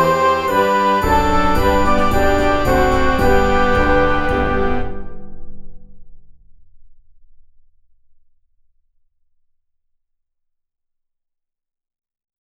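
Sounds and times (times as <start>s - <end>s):
minuet: 0.0s - 5.8s.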